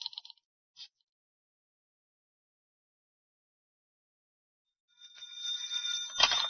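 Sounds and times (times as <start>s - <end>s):
telephone bell ringing: 5.1s - 6.4s.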